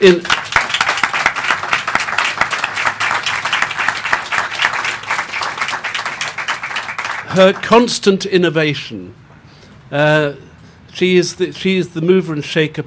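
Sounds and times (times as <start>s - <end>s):
speech: 0.0s - 0.3s, 7.4s - 9.3s, 9.9s - 12.8s
audience applause: 0.0s - 7.9s.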